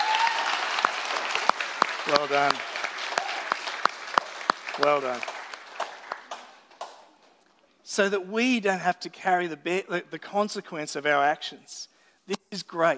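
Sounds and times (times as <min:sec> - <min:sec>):
audience applause: 0:00.0 - 0:07.1
speech: 0:02.1 - 0:02.7, 0:04.8 - 0:05.4, 0:08.0 - 0:12.9.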